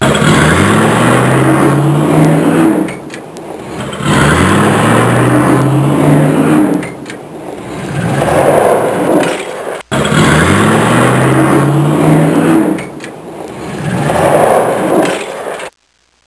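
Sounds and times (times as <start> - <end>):
engine accelerating and shifting gears: 0.0 - 15.2.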